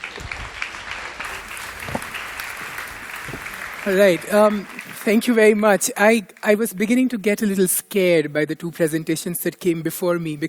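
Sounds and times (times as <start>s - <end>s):
audience applause: 0.0s - 5.4s
speech: 3.9s - 10.4s.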